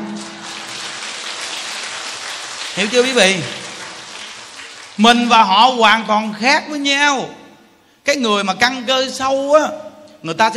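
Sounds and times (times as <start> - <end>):
audience clapping hands: 0.0 - 5.7
speech: 2.8 - 3.6, 5.0 - 7.4, 8.1 - 10.5.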